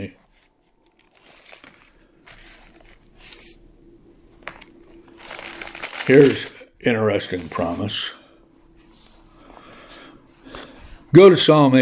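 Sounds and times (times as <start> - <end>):
Bible pages turning: 0.2 - 3.6, 4.3 - 6.6, 7.2 - 8.0
speech: 6.1 - 8.2, 11.1 - 11.8.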